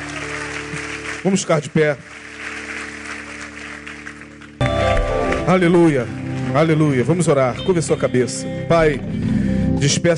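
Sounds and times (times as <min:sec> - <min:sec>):
audience applauding: 0:00.0 - 0:07.8
speech: 0:01.2 - 0:02.3, 0:05.5 - 0:10.1.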